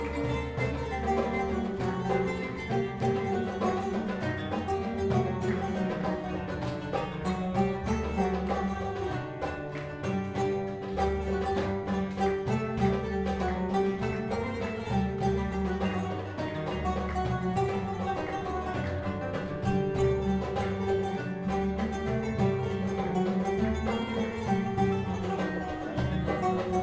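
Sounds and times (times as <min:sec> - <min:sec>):
music from Syria: 0:00.0 - 0:26.8.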